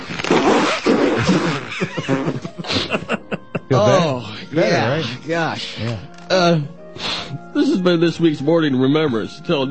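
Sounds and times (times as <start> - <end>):
person blowing nose: 0.2 - 3.1, 6.9 - 7.5
laughter: 1.1 - 5.2
speech: 3.7 - 9.6.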